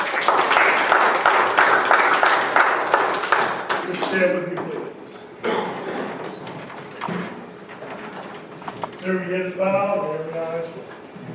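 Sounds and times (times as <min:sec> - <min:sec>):
audience applauding: 0:00.0 - 0:04.5
speech: 0:04.1 - 0:05.0, 0:09.0 - 0:10.7.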